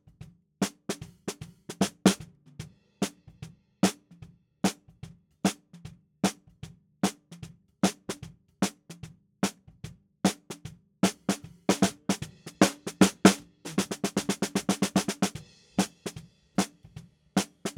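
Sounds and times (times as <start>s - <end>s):
snare drum: 0.6s - 3.3s, 7.0s - 9.6s, 10.3s - 17.7s.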